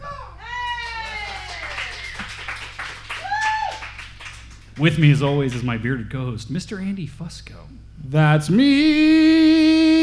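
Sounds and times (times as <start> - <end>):
whoops and cheers: 0.0 - 2.3, 3.1 - 4.0
applause: 0.8 - 4.7
speech: 4.8 - 9.4.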